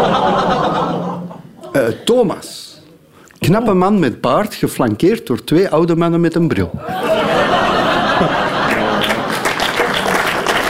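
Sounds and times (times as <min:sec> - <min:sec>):
laughter: 0:00.0 - 0:02.0, 0:06.8 - 0:10.5
speech: 0:01.9 - 0:02.6, 0:03.4 - 0:07.6, 0:08.2 - 0:08.5
audience applause: 0:07.5 - 0:10.6.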